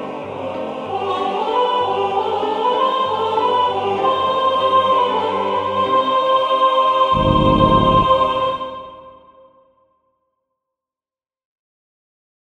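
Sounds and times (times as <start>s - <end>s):
soprano singing: 0.0s - 9.1s.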